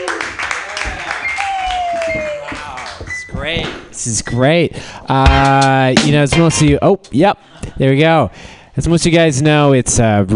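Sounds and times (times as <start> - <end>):
crowd applauding wildly: 0.0 - 3.1
speech: 3.5 - 10.3.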